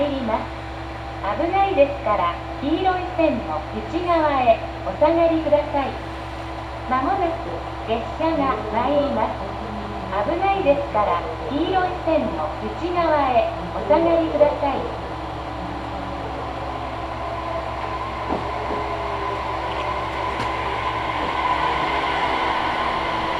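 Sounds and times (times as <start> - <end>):
woman making train announcement on the Sasebo Line: 0.0 - 0.6, 1.2 - 6.1, 6.8 - 16.4
JR 817 series train running noise on the Sasebo Line: 0.0 - 23.3
steady low drone: 0.0 - 23.3.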